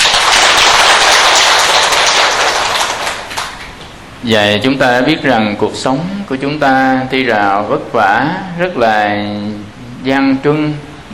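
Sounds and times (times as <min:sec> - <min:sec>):
audience applause: 0:00.0 - 0:03.9
speech: 0:04.2 - 0:11.1.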